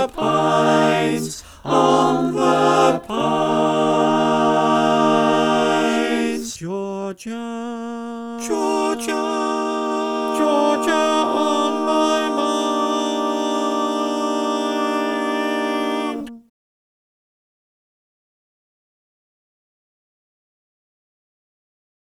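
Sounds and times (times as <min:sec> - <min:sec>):
SATB four-part choir singing: 0:00.0 - 0:16.4.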